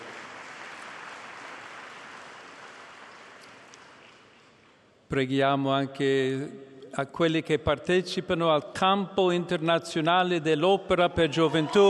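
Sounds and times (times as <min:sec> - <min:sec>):
audience applause for newlyweds: 0:00.0 - 0:04.3, 0:11.4 - 0:11.8
speech: 0:05.1 - 0:11.8.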